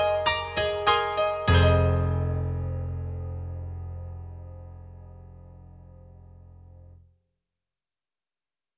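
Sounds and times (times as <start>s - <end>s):
Roland SonicCell digital piano: 0.0s - 7.0s.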